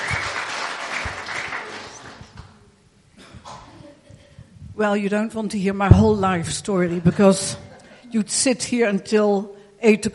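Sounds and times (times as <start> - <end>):
audience applause: 0.0 - 2.2
speech: 4.8 - 10.1.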